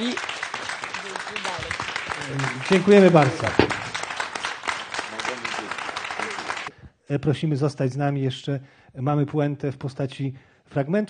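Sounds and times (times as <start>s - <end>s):
applause: 0.0s - 6.8s
speech: 2.3s - 3.7s, 7.1s - 11.0s.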